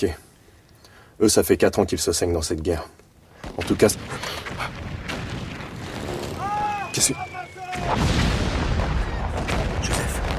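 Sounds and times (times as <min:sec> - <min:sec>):
speech: 0:00.0 - 0:00.2, 0:01.2 - 0:04.4, 0:07.0 - 0:08.2
World War I era artillery blasts: 0:03.4 - 0:10.3
whistling tones: 0:06.0 - 0:09.7.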